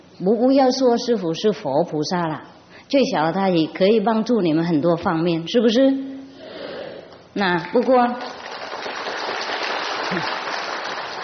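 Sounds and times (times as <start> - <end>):
speech: 0.2 - 6.1, 7.4 - 8.4, 10.1 - 10.4
audience clapping during a spiritual teacher's talk: 7.6 - 11.2.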